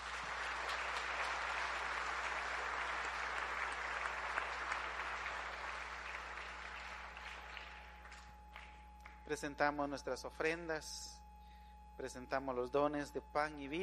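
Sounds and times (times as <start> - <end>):
audience applause: 0.0 - 9.2
speech: 9.3 - 11.2, 12.0 - 13.8.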